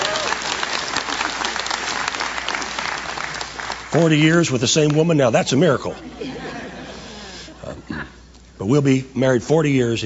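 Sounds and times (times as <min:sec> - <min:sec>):
audience clapping: 0:00.0 - 0:05.1
speech: 0:03.9 - 0:06.1, 0:08.7 - 0:10.0
laughter: 0:06.0 - 0:07.6.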